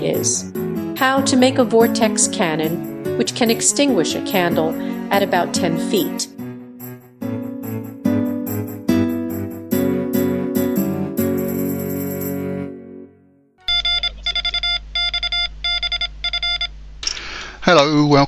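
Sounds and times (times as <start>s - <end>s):
music: 0.0s - 13.6s
speech: 0.1s - 6.3s
emergency alarm tone of loud high buzzy beeps: 13.6s - 16.7s.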